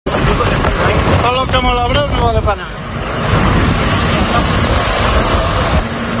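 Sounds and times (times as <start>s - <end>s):
helicopter flying overhead: 0.1s - 6.1s
speech: 1.5s - 2.8s.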